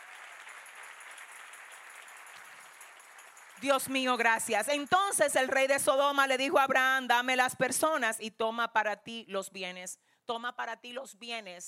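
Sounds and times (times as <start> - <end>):
audience applause: 0.0 - 3.6
speech: 3.6 - 11.6.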